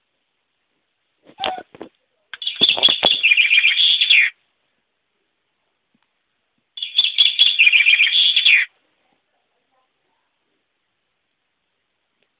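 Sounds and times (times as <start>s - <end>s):
English bird: 1.3s - 1.8s, 2.4s - 4.4s, 6.8s - 8.7s.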